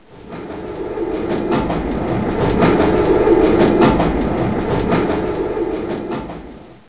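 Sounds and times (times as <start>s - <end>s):
train: 0.0s - 6.8s.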